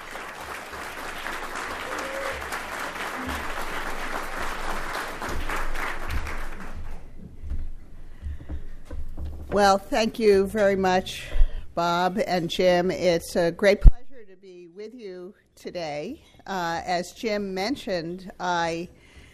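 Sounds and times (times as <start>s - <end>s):
lecture audience applauding a speaker: 0.0s - 7.2s
speech: 9.6s - 13.9s, 15.9s - 19.0s.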